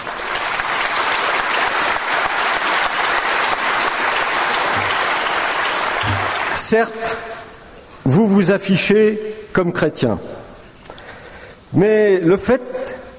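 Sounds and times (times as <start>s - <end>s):
audience applauding warmly: 0.0s - 6.8s
speech: 6.6s - 7.4s, 8.0s - 10.4s, 11.7s - 12.8s.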